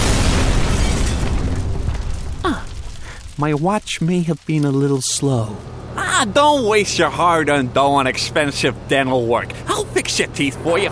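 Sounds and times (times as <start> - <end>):
bomb explosion sound effect: 0.0 - 4.6
speech: 3.4 - 10.9.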